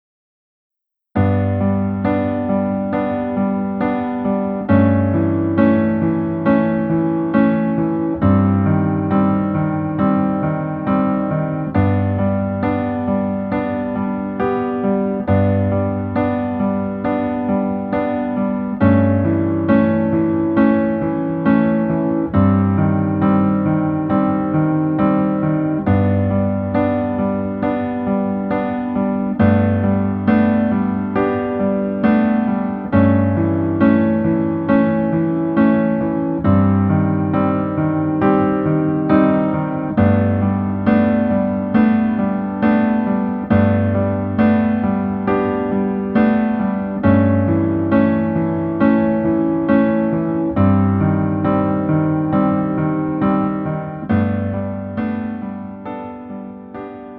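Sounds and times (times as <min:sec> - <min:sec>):
piano: 0:00.8 - 0:57.1.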